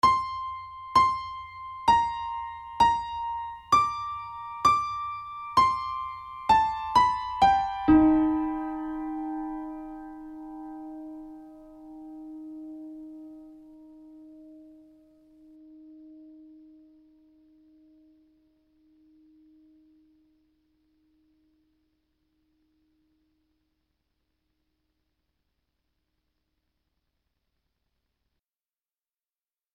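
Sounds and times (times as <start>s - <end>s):
piano: 0.0s - 21.8s.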